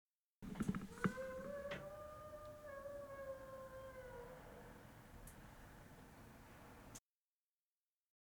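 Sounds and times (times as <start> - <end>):
dog howling: 0.5 - 6.3
dog yelping: 0.7 - 4.8.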